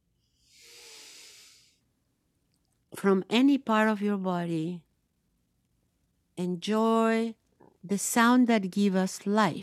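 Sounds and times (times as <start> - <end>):
soft breath: 0.2 - 1.9
speech: 3.0 - 4.9, 6.4 - 9.6.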